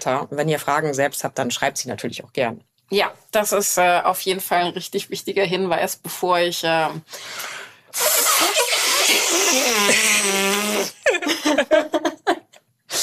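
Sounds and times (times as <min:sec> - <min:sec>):
speech: 0:00.0 - 0:08.6, 0:09.5 - 0:12.1
breathy hiss: 0:07.0 - 0:11.0, 0:12.9 - 0:13.0
vocal fart imitation: 0:08.0 - 0:11.3
laughter: 0:11.0 - 0:12.6.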